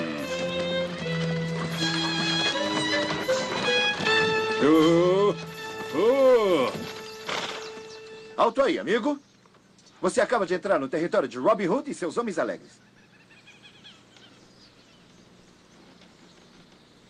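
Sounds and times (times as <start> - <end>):
hoofbeats of a drunken mule walking: 0.0 - 8.6
speech: 4.6 - 5.4, 8.4 - 9.2, 10.0 - 12.9.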